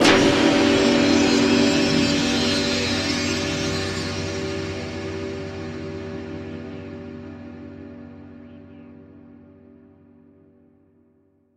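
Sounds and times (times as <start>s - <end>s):
production element hit: 0.0s - 7.8s.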